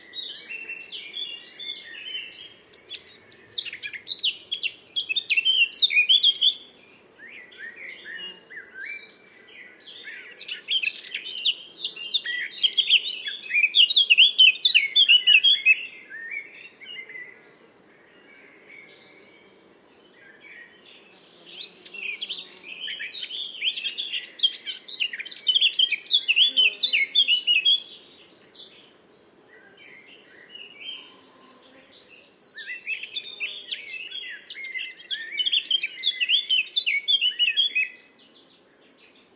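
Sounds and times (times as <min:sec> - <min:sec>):
Eurasian blackcap song: 0:00.0 - 0:17.4, 0:18.3 - 0:39.3.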